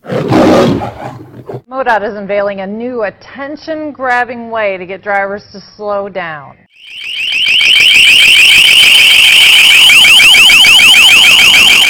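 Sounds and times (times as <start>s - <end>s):
speech: 1.8s - 7.1s
long-range acoustic device blaring loud siren: 6.7s - 11.8s.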